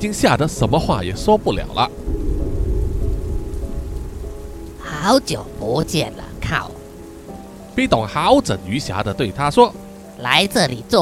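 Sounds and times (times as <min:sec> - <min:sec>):
speech: 0:00.0 - 0:02.2, 0:05.0 - 0:06.8, 0:07.8 - 0:11.0
steady dense rain hissing: 0:01.6 - 0:11.0
deep rolling thunder: 0:01.9 - 0:07.5.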